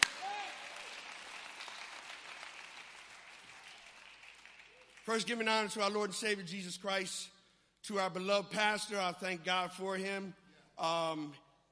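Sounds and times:
crowd clapping in praise: 0.0s - 5.2s
speech: 5.1s - 11.4s.

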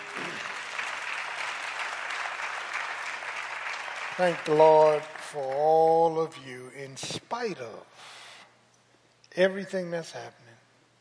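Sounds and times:
audience applause: 0.0s - 6.3s
speech: 4.2s - 8.2s, 9.4s - 10.4s.

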